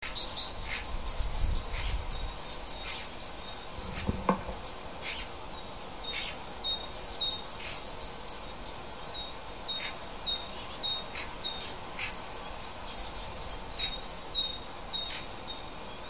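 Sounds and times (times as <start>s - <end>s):
native hedgerow bird chirping: 0.0s - 16.0s.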